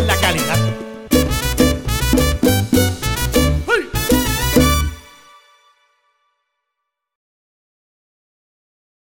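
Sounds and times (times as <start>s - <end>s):
jingle: 0.0s - 6.0s.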